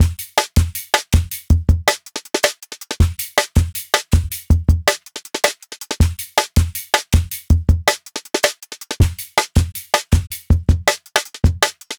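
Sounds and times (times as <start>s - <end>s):
160 bpm live jungle drum break: 0.0s - 11.9s.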